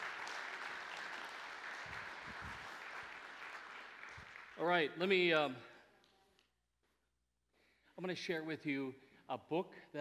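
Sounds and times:
audience applause: 0:00.0 - 0:04.8
speech: 0:04.6 - 0:05.7, 0:08.0 - 0:10.0.

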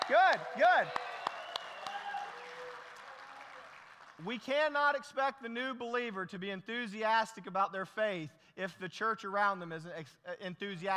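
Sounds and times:
audience clapping: 0:00.0 - 0:04.3
speech: 0:00.1 - 0:01.1, 0:04.2 - 0:10.9.

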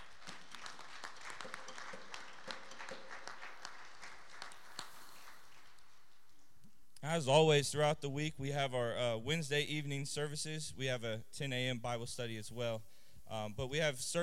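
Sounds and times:
audience applause: 0:00.0 - 0:06.0
speech: 0:07.2 - 0:14.2.

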